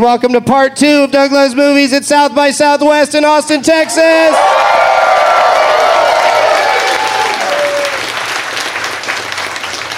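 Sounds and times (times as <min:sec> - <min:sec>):
speech: 0:00.0 - 0:04.6
whoops and cheers: 0:04.1 - 0:08.1
live audience applause: 0:04.3 - 0:09.9.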